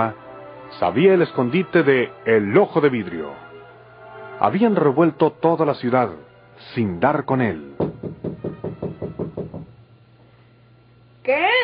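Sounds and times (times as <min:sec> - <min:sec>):
speech: 0:00.0 - 0:03.4, 0:04.4 - 0:08.3, 0:11.2 - 0:11.6
knocking on a door: 0:07.8 - 0:09.8.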